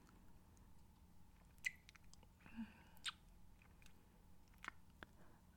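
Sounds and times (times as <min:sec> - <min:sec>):
ASMR nibbling mouth sounds on an earlobe: 0:01.4 - 0:02.3, 0:03.0 - 0:05.1.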